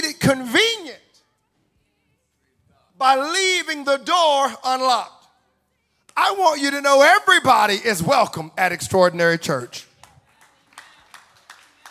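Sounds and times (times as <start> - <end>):
speech: 0.3 - 1.0, 3.0 - 5.2, 6.2 - 9.9
audience clapping hands: 9.9 - 11.8.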